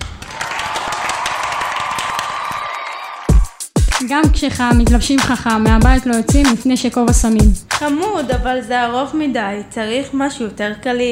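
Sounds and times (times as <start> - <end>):
crowd applauding: 0.0 - 3.6
speech: 4.0 - 11.1
loud thumps: 4.3 - 7.6.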